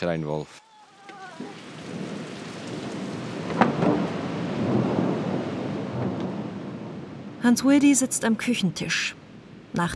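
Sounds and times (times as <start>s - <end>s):
speech: 0.0s - 0.6s, 7.4s - 9.9s
steady hissing rain in a thunderstorm: 0.0s - 9.9s
low rolling thunder: 1.2s - 8.4s
sharp crack of thunder: 1.3s - 7.5s.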